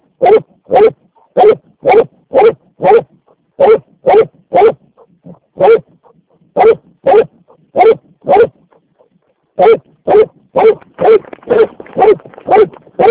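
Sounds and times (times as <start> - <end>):
dog barking: 0.1 - 13.1.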